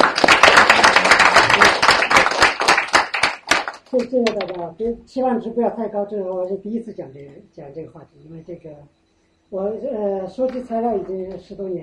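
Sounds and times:
audience applause: 0:00.0 - 0:03.9
speech: 0:04.0 - 0:11.8.

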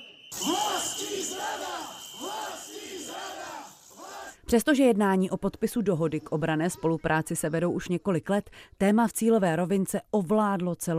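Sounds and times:
protest crowd whistling: 0:00.0 - 0:04.0
protest crowd shouting: 0:00.0 - 0:04.4
speech: 0:04.5 - 0:10.9.

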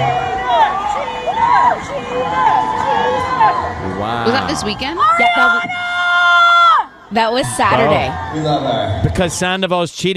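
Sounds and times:
high rising and falling screams and whoops: 0:00.0 - 0:03.9, 0:05.0 - 0:07.0
concert crowd cheering: 0:00.0 - 0:09.1
speech: 0:03.4 - 0:05.9, 0:07.1 - 0:10.1.

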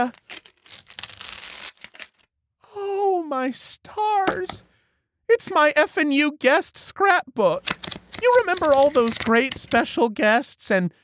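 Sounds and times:
speech: 0:00.0 - 0:00.2, 0:03.3 - 0:04.7, 0:05.3 - 0:11.0
sticky tape ripping off the roll while taping a box shut: 0:00.0 - 0:02.3, 0:07.7 - 0:09.8.

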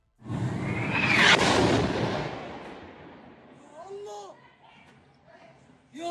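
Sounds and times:
missile striking hospital, explosion: 0:00.2 - 0:03.8.

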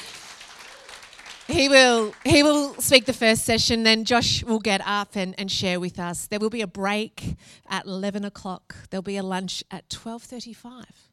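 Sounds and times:
crowd applauding: 0:00.0 - 0:03.2
speech: 0:01.5 - 0:11.1.

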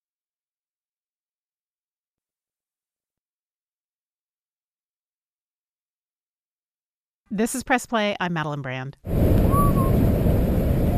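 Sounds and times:
speech: 0:07.3 - 0:09.6
wind-like rushing noise: 0:09.1 - 0:10.9
man whistling while rock climbing: 0:09.4 - 0:10.0.

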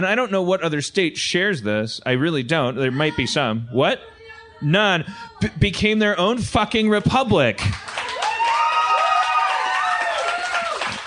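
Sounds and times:
speech: 0:00.0 - 0:08.0
scattered audience applause: 0:07.6 - 0:11.0
audience whooping and cheering: 0:07.7 - 0:11.0.

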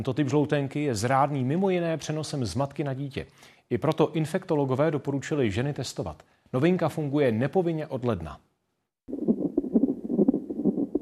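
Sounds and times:
speech: 0:00.0 - 0:08.5
fetal heartbeat on a Doppler monitor: 0:09.1 - 0:11.0.

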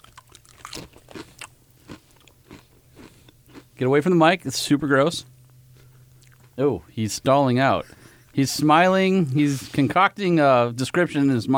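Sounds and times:
person chewing potato chips: 0:00.0 - 0:03.8, 0:05.8 - 0:06.5
speech: 0:03.8 - 0:05.3, 0:06.6 - 0:11.5.

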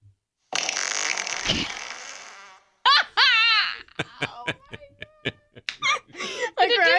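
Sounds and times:
fart sound played from a phone fart app: 0:00.5 - 0:02.8
laughter: 0:02.8 - 0:06.9
people talking: 0:04.0 - 0:06.9.

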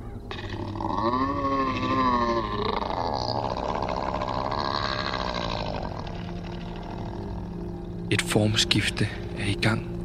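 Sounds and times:
creature screaming in pain: 0:00.3 - 0:07.7
speech: 0:08.1 - 0:09.9.

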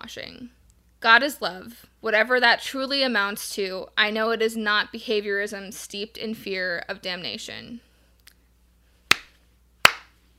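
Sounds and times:
speech: 0:00.0 - 0:07.9
slow hand clapping: 0:09.1 - 0:10.2.

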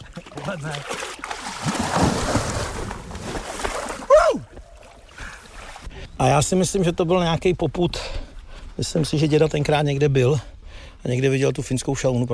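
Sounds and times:
person plunging into icy water: 0:00.0 - 0:05.9
speech: 0:00.5 - 0:01.1, 0:06.2 - 0:08.2, 0:08.8 - 0:12.3
person crying out: 0:04.1 - 0:04.6.

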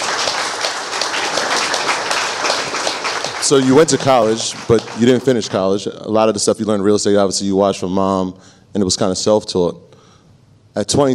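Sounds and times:
crowd applauding: 0:00.0 - 0:05.8
speech: 0:03.5 - 0:10.0, 0:10.8 - 0:11.1.

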